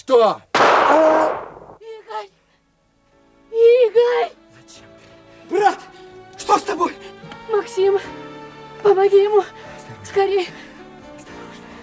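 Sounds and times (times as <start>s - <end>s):
speech: 0.0s - 1.4s, 3.6s - 4.8s, 5.5s - 5.9s, 6.5s - 8.2s, 8.8s - 10.6s
gunshot: 0.6s - 1.8s.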